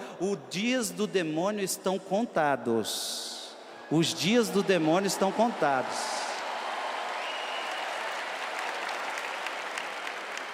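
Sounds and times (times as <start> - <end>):
speech: 0.2 - 3.3, 3.9 - 6.2
audience applause: 4.6 - 10.5.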